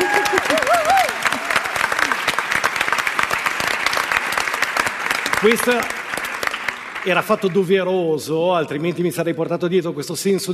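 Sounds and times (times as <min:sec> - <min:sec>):
audience applause: 0:00.0 - 0:07.9
speech: 0:05.4 - 0:06.0, 0:07.0 - 0:10.5.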